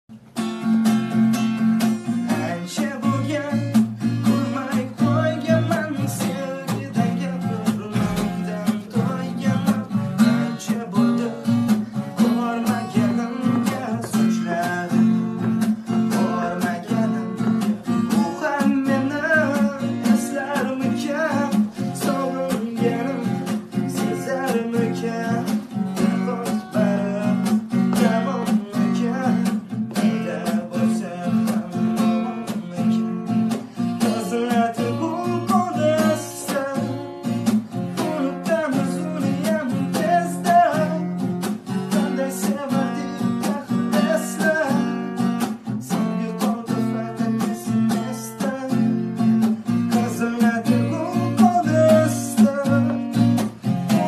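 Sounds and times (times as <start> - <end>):
guitar: 0.0 - 54.0.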